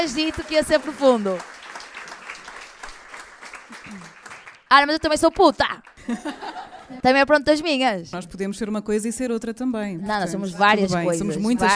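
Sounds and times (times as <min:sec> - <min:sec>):
speech: 0:00.0 - 0:01.6, 0:03.9 - 0:11.7
applause: 0:00.0 - 0:06.3
laughter: 0:06.0 - 0:07.0.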